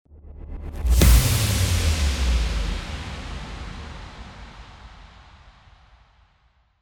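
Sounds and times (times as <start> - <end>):
impact: 0.8 - 6.1.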